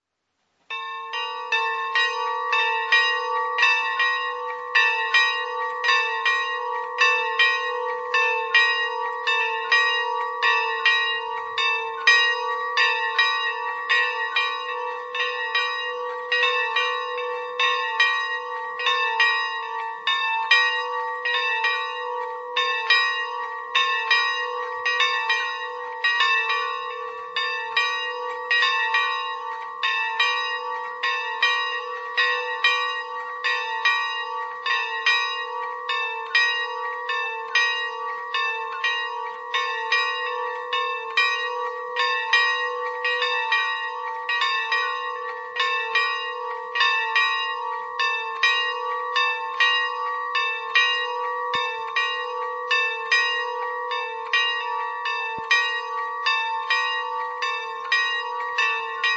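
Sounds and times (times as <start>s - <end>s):
bells ringing: 0.7s - 59.1s.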